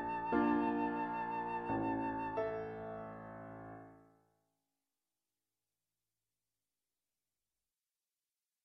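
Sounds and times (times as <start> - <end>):
flute: 0.0 - 3.8
piano: 0.0 - 4.2.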